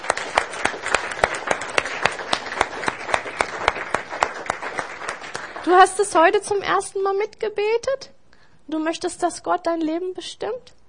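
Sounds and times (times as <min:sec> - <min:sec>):
audience applauding: 0:00.0 - 0:06.1
speech: 0:05.7 - 0:10.8.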